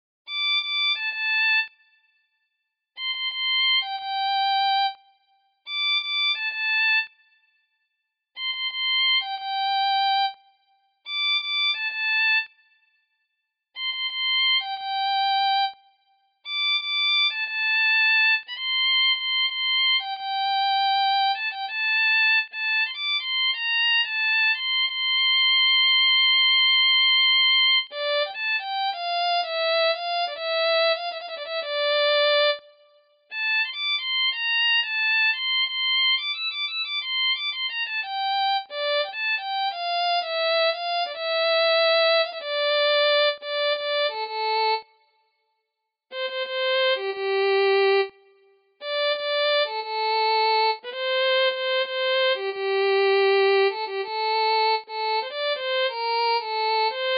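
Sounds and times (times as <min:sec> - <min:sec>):
violin: 0:00.3 - 0:02.1, 0:03.0 - 0:05.1, 0:05.7 - 0:07.3, 0:08.4 - 0:10.5, 0:11.1 - 0:12.7, 0:13.8 - 0:15.9, 0:16.5 - 0:45.2, 0:46.1 - 0:57.1.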